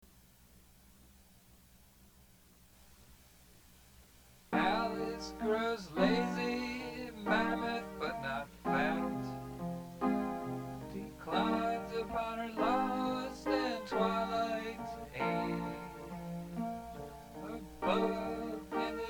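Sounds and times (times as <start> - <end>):
chorus singing: 4.6 - 19.0.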